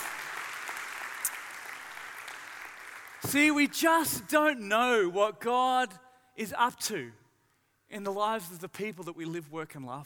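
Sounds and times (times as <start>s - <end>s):
audience applause: 0.0s - 3.3s
speech: 3.2s - 7.2s, 7.9s - 10.0s.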